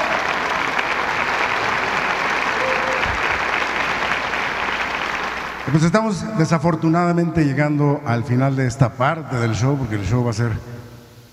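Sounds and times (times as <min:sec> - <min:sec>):
audience applause: 0:00.0 - 0:06.0
speech: 0:05.7 - 0:10.8.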